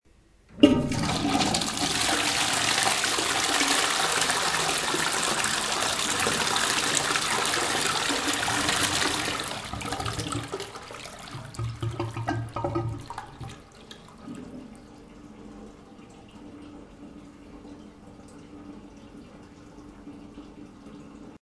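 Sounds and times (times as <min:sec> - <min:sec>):
toilet flushing: 0:00.5 - 0:21.4.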